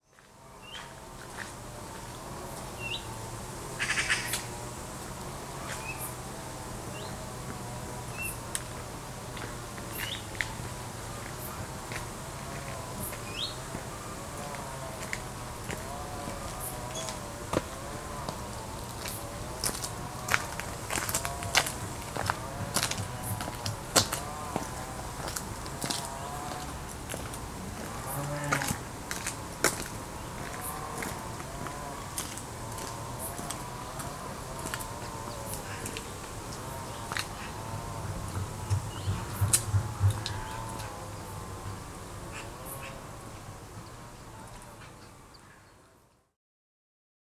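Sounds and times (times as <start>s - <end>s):
main street ambience in the morning: 0.0s - 46.1s.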